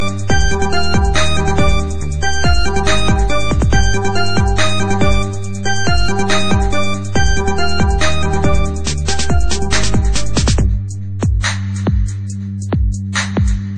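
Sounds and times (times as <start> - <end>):
hip hop ringtone: 0.0 - 13.6.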